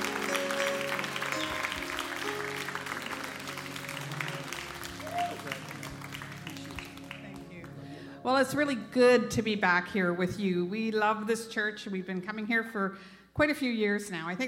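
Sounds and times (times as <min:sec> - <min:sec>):
New Harvest Church congregation applauding visiting pastors: 0:00.0 - 0:08.1
speech: 0:08.2 - 0:14.4.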